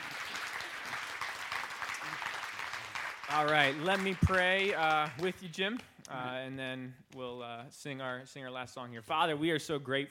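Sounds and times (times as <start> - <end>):
audience round of applause: 0.0 - 5.3
speech: 3.3 - 10.0.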